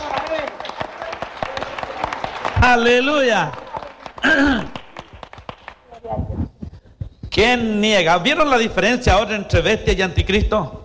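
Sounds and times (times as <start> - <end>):
audience applause: 0.0 - 5.9
speech: 2.6 - 3.6, 4.2 - 4.8, 7.4 - 10.8.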